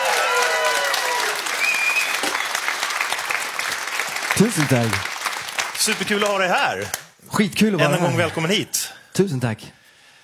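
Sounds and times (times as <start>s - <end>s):
whistles or cheers from a crowd: 0.0s - 3.0s
steady loud applause from a crowd: 0.0s - 7.0s
speech: 4.4s - 5.1s, 5.8s - 9.8s.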